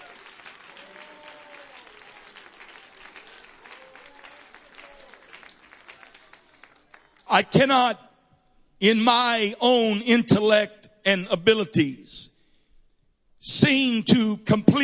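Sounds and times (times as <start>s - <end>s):
audience clapping hands: 0.0s - 7.7s
speech: 7.3s - 8.0s, 8.8s - 12.3s, 13.4s - 14.8s.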